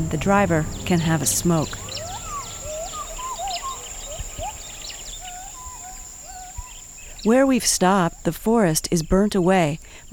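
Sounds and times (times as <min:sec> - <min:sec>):
speech: 0:00.0 - 0:01.8, 0:07.2 - 0:10.1
gibbons calling in distant forest: 0:00.0 - 0:07.2.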